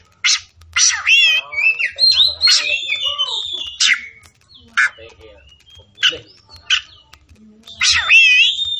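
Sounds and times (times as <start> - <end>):
Oriental magpie-robin singing: 0.0 - 8.7.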